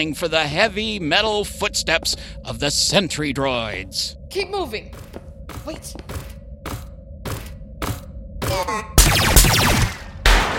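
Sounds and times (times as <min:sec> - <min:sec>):
speech: 0:00.0 - 0:06.2
gunshots: 0:06.7 - 0:10.5.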